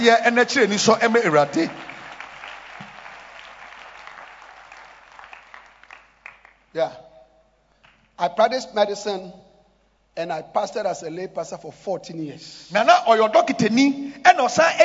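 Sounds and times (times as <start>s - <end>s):
speech: 0.0s - 1.9s, 6.8s - 7.0s, 8.2s - 9.4s, 10.2s - 14.8s
people clapping hands: 0.0s - 6.7s, 7.8s - 8.2s.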